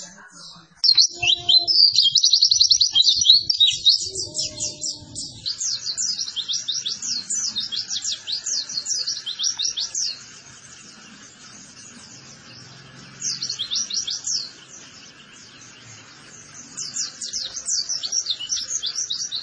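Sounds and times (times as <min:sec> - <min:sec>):
white-eye singing: 0:00.9 - 0:19.4.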